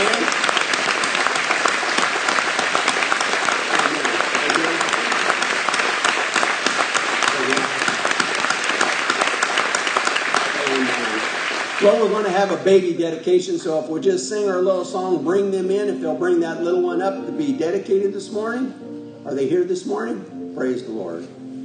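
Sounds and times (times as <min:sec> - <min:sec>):
audience applause: 0:00.0 - 0:12.8
speech: 0:11.8 - 0:21.4.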